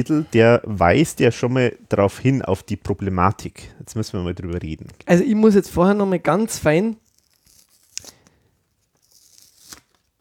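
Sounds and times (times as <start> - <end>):
speech: 0.0 - 7.0
plastic wrap on a new CD case being torn and peeled off: 7.0 - 10.1.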